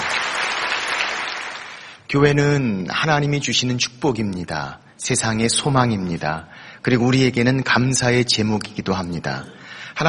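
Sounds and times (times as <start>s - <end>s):
audience applause: 0.0s - 2.0s
speech: 2.1s - 10.0s.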